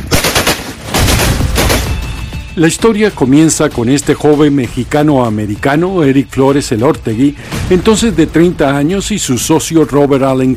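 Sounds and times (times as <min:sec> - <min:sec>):
rapid gunfire from a high-powered firearm: 0:00.0 - 0:02.2
speech: 0:02.6 - 0:10.5.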